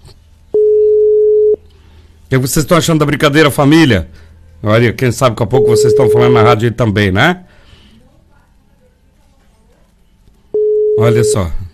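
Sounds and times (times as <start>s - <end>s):
faint noise: 0.0s - 11.7s
telephone ringing tone while a caller waits for an answer: 0.5s - 1.6s, 5.6s - 6.6s, 10.5s - 11.6s
speech: 2.3s - 7.5s, 11.0s - 11.6s.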